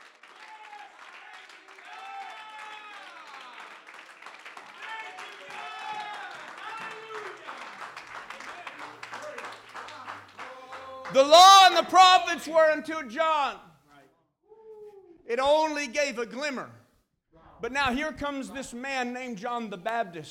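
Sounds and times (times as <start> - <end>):
church congregation clapping hands: 0.0 - 13.6
loud raised voices calling out: 10.4 - 13.7
speech: 11.1 - 13.7, 15.3 - 16.8, 17.6 - 20.2.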